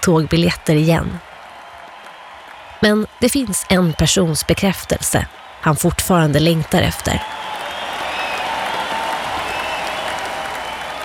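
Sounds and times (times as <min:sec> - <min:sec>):
speech: 0:00.0 - 0:01.3, 0:02.8 - 0:07.5
large arena crowd clapping: 0:00.0 - 0:11.0
whistles: 0:07.2 - 0:11.0.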